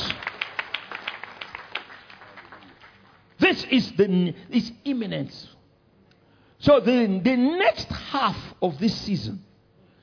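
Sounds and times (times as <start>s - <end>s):
congregation clapping during a church service: 0.0s - 3.4s
speech: 3.5s - 5.6s, 6.6s - 9.5s.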